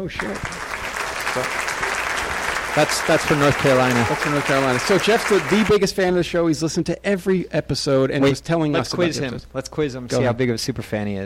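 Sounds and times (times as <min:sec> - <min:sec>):
speech: 0:00.0 - 0:00.6, 0:01.3 - 0:01.9, 0:02.8 - 0:11.2
applause: 0:00.0 - 0:05.9.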